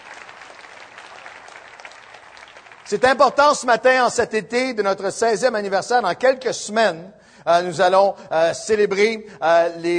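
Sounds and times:
church congregation applauding during a Sunday service: 0.0s - 4.1s
speech: 2.9s - 9.9s.

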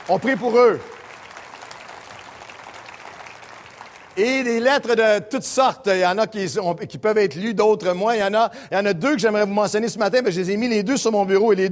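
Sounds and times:
faint audience applause for the wildfire-threatened Kelowna region: 0.0s - 4.6s
speech: 0.1s - 0.9s, 4.2s - 11.7s.

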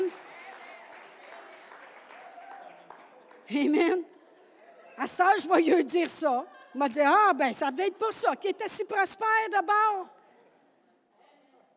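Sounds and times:
audience applause: 0.0s - 3.8s
speech: 3.5s - 4.1s, 5.0s - 10.2s.

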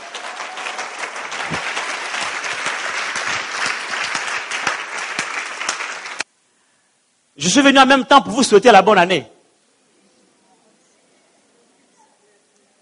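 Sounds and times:
church congregation applauding to acclaim the word of God: 0.0s - 6.3s
speech: 7.4s - 9.4s.

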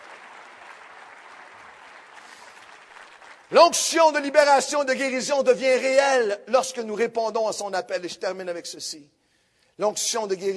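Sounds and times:
crowd clapping: 0.0s - 4.6s
speech: 3.5s - 9.2s, 9.8s - 10.5s.

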